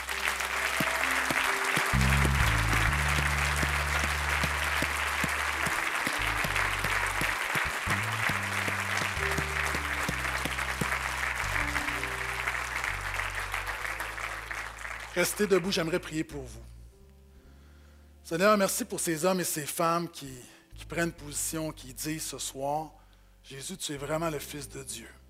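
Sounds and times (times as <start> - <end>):
audience applause: 0.0 - 15.7
speech: 15.2 - 16.7, 18.3 - 25.2.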